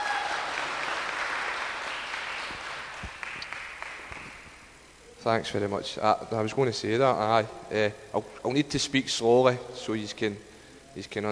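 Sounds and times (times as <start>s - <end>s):
church meeting audience applause welcoming a speaker: 0.0s - 4.4s
speech: 5.2s - 11.3s.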